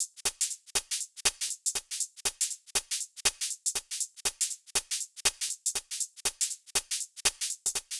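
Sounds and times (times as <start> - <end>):
hi-hat and shaker loop: 0.0 - 7.9.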